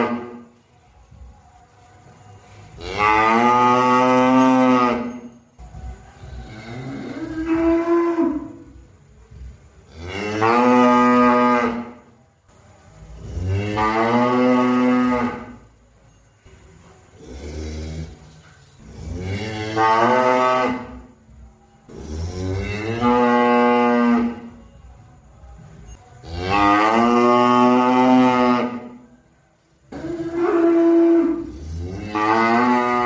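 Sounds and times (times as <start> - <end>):
cow mooing: 2.8 - 5.3, 6.4 - 8.7, 9.9 - 12.0, 13.2 - 15.6, 18.8 - 21.1, 21.9 - 24.5, 26.2 - 29.0, 29.9 - 33.0.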